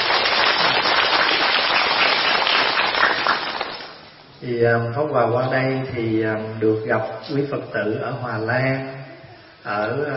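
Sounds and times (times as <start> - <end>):
audience applause: 0.0 - 4.0
speech: 4.5 - 9.0, 9.6 - 10.1.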